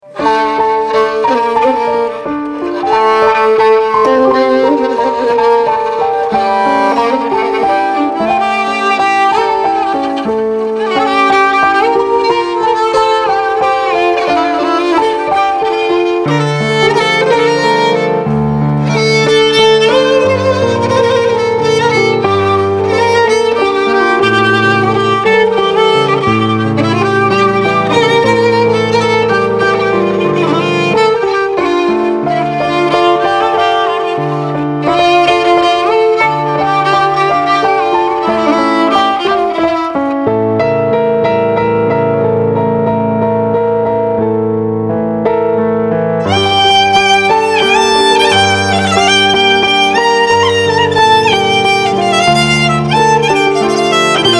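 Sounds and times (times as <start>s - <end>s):
violin: 0.0s - 54.3s.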